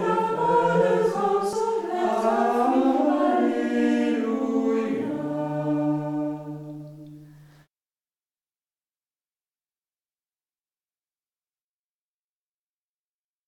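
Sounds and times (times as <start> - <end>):
Easter liturgy alleluia: 0.0 - 7.2.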